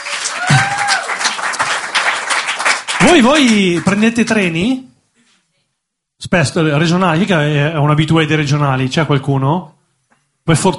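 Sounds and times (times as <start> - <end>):
audience applause: 0.0 - 4.0
speech: 3.0 - 4.9, 6.2 - 9.8, 10.4 - 10.7.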